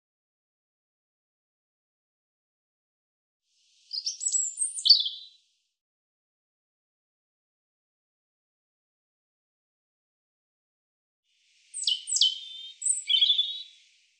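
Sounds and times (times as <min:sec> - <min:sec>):
European robin song: 0:03.8 - 0:05.5, 0:11.5 - 0:14.1.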